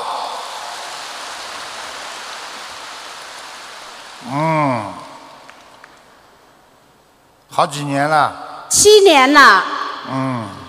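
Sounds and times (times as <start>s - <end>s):
applause: 0.0s - 6.3s
speech: 4.2s - 5.0s, 7.6s - 10.6s.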